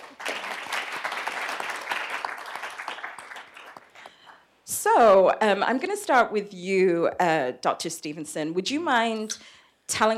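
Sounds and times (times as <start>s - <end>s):
audience applause welcoming a speaker at a panel discussion: 0.0s - 4.2s
speech: 5.0s - 10.1s.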